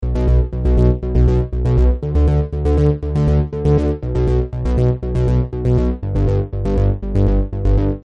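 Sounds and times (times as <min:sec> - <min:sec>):
synth bass: 0:00.0 - 0:08.0.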